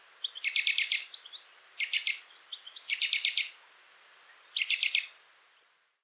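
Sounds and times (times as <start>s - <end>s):
Eurasian nuthatch calling clipped notes and whistles: 0.0s - 1.1s, 1.8s - 3.5s.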